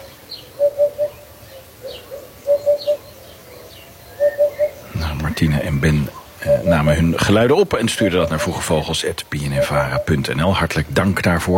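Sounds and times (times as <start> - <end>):
hoopoe calling in Petrovdol, Bulgaria: 0.0 - 11.5
speech: 5.4 - 11.5.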